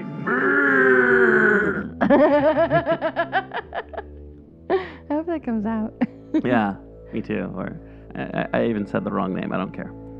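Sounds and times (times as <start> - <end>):
voice imitating alien buzzing: 0.0 - 2.0
laughter: 2.0 - 4.9
speech: 2.1 - 4.1, 5.4 - 10.0.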